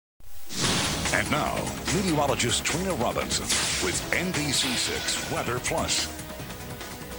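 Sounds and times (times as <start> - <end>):
weather jingle: 0.6 - 6.2.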